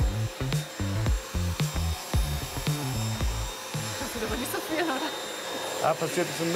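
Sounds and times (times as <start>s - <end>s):
König vacuum cleaner sucking filling out of a tile joint in a test rig: 0.0s - 6.5s
man narrating: 5.8s - 6.5s
speech: 5.8s - 6.5s.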